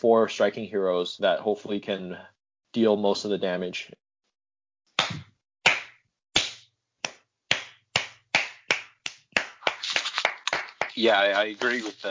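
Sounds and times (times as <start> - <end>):
speech: 0.0 - 4.0, 11.0 - 12.0
sharp hand claps: 5.0 - 12.0.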